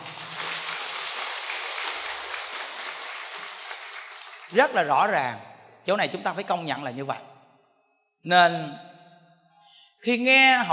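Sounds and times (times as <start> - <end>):
crowd clapping: 0.0 - 5.2
speech: 4.5 - 7.3, 8.2 - 8.9, 10.0 - 10.7.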